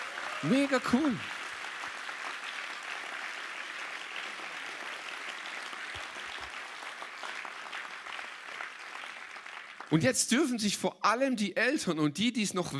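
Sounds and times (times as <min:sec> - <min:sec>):
audience applause: 0:00.0 - 0:10.1
speech: 0:00.4 - 0:01.3, 0:09.9 - 0:12.7.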